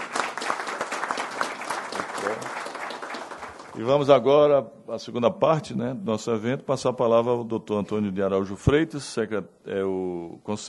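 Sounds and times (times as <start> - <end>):
audience applause: 0.0 - 3.8
speech: 3.8 - 10.6.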